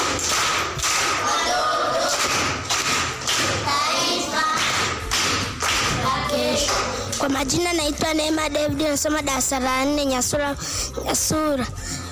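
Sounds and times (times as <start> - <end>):
schoolchildren at a primary school in Nyasura clapping rhythmically: 0.0 - 7.5
speech: 7.3 - 11.9.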